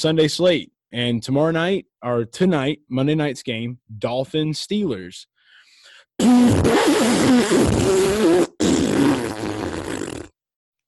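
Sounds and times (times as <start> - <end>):
speech: 0.0 - 5.3, 6.2 - 8.5
tongue raspberry imitating a fart: 6.2 - 10.4.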